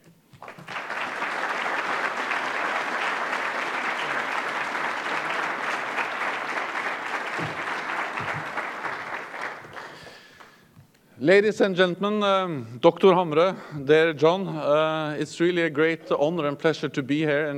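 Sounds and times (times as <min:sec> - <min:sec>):
audience applause: 0:00.0 - 0:10.6
speech: 0:11.2 - 0:17.5.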